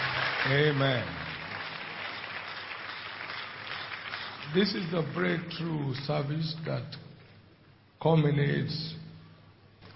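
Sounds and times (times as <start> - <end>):
church congregation applauding during an evening service: 0.0 - 5.5
speech: 0.5 - 1.2, 4.5 - 7.1, 8.0 - 9.0.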